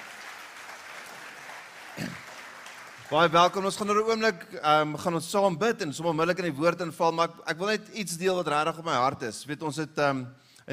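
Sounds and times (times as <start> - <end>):
audience clapping hands: 0.0 - 4.1
speech: 3.1 - 10.7.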